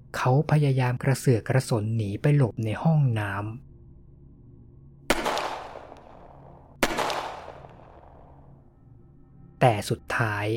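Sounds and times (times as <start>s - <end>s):
low steady hum: 0.0s - 10.5s
speech: 0.2s - 3.7s, 9.6s - 10.5s
pistol gunshots: 5.1s - 8.4s.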